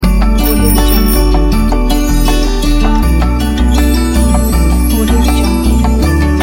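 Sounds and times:
new year logo jingle: 0:00.2 - 0:06.3.

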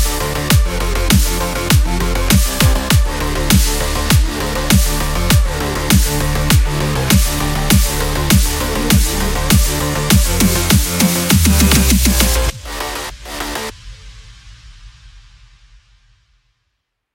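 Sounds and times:
electro sport music: 0:00.0 - 0:13.7.

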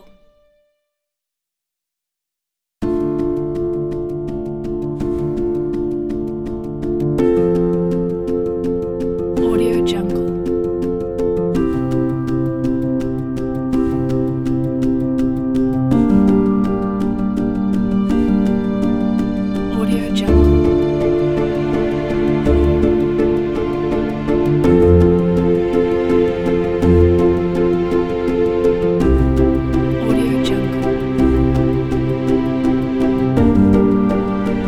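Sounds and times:
romantic peaceful felt piano: 0:02.8 - 0:34.6
romantic peaceful strings: 0:16.2 - 0:34.6.

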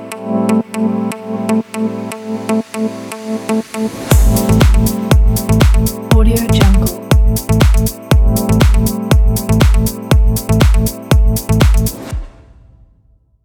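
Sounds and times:
fashion house logo jingle: 0:00.2 - 0:12.3.

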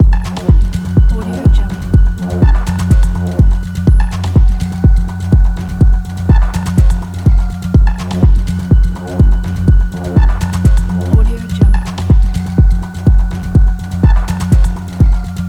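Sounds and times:
trance loop: 0:00.0 - 0:15.4.

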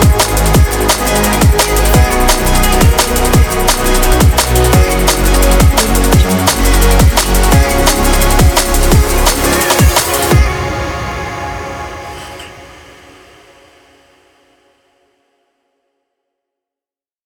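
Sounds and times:
drum and bass music: 0:00.0 - 0:13.2.

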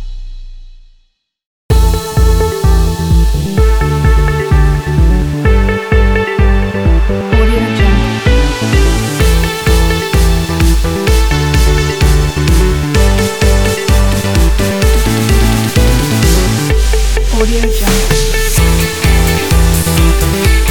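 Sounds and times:
upbeat electronic dance music with vocals: 0:01.7 - 0:20.7.

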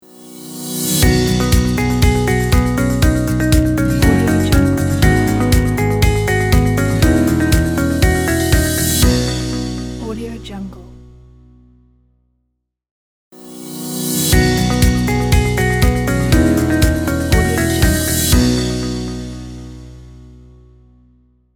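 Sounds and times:
corporate logo jingle: 0:00.4 - 0:10.1, 0:14.0 - 0:20.0.

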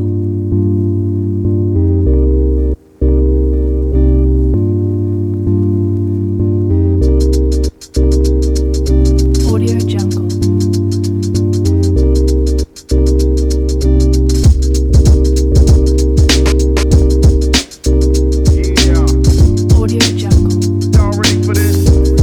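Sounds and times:
urban vlog music: 0:00.1 - 0:22.2.

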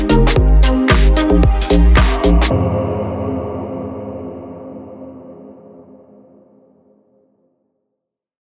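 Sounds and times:
fashion vibe music: 0:00.0 - 0:04.3.

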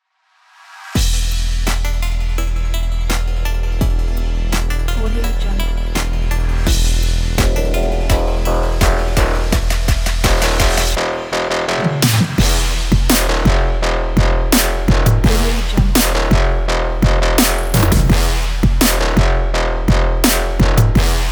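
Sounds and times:
sport motivational trap music: 0:01.0 - 0:21.2.

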